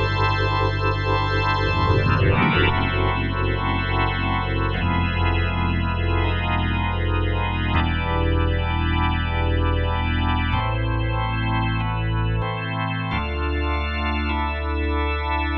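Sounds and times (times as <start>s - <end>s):
full organ on Korg TR-Rack: 0.0s - 15.5s.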